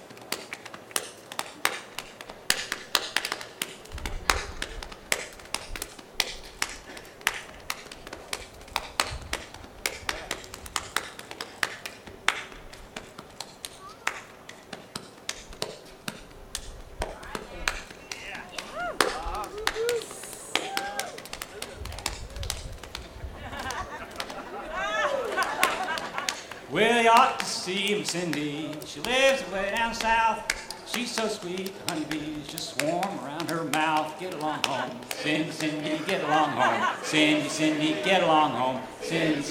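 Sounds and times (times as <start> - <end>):
hambone body-slapping percussion: 0.0 - 36.3
laughter: 17.5 - 29.7, 33.9 - 39.4
person singing: 18.7 - 21.2, 26.6 - 39.4
speech: 27.7 - 39.4.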